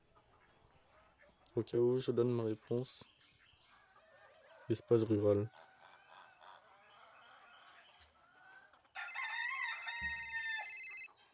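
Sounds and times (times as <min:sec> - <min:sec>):
speech: 0:01.6 - 0:03.2, 0:04.7 - 0:05.7
alarm clock ringing: 0:09.1 - 0:11.1.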